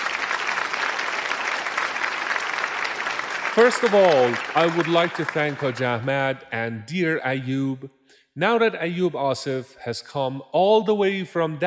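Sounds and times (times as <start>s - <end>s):
audience applause: 0.0s - 6.1s
speech: 3.6s - 11.6s.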